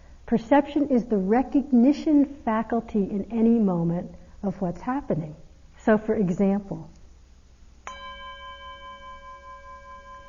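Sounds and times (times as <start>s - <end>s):
speech: 0.3s - 7.0s
bell ringing: 7.9s - 10.2s.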